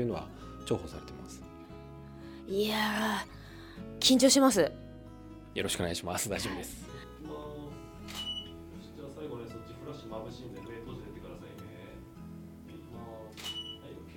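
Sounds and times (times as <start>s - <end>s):
speech: 0.0s - 1.5s, 2.5s - 4.8s, 5.5s - 7.4s
camera shutter clicks during a fitness trainer session: 8.1s - 8.5s, 13.3s - 13.8s.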